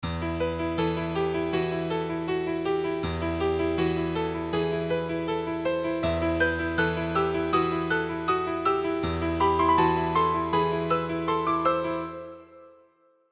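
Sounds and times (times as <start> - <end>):
piano: 0.0 - 13.2.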